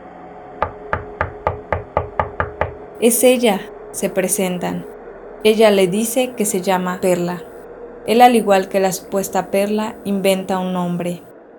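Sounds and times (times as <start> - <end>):
knocking on a door: 0.6 - 2.9
speech: 3.0 - 11.3.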